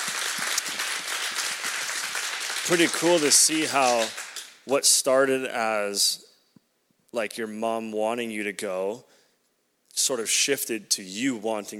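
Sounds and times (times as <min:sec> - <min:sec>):
audience applauding: 0:00.0 - 0:04.6
speech: 0:02.7 - 0:06.2, 0:07.1 - 0:09.1, 0:10.0 - 0:11.7.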